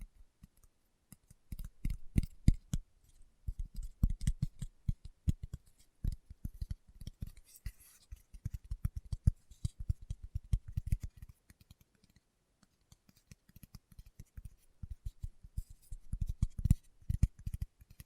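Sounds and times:
fingertips tapping: 0.4s - 18.0s.

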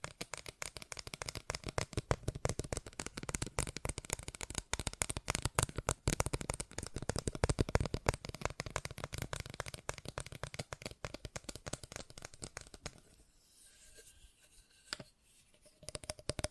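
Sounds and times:
fast tapping: 0.0s - 13.0s.

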